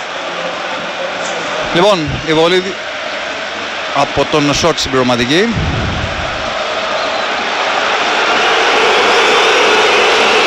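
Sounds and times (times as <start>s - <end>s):
arena crowd booing a player: 0.0s - 10.4s
speech: 1.7s - 2.9s, 4.0s - 5.8s.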